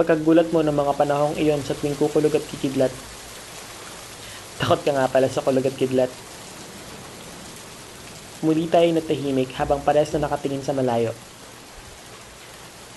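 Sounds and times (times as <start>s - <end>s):
speech: 0.0s - 3.2s, 4.6s - 6.3s, 8.4s - 11.3s
rain on a tin roof: 0.0s - 12.9s.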